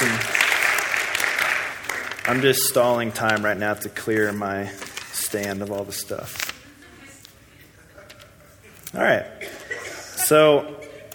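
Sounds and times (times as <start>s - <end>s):
audience applause: 0.0s - 2.8s
speech: 2.3s - 6.4s, 8.9s - 9.5s, 10.3s - 10.8s
laughter: 9.4s - 11.1s.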